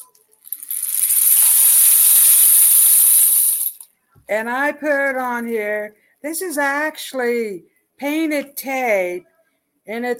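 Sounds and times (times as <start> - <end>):
homemade rain stick rattling: 0.0 - 3.9
speech: 4.3 - 9.3, 9.9 - 10.1.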